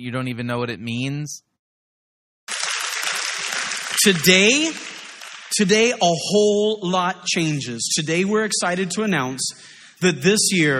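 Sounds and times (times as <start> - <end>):
speech: 0.0 - 1.5, 4.0 - 10.7
audience clapping: 2.5 - 6.8.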